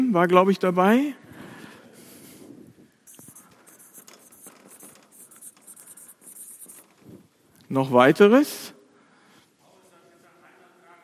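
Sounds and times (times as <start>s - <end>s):
speech: 0.1s - 1.2s, 7.7s - 8.8s
pen writing by hand: 3.1s - 7.0s.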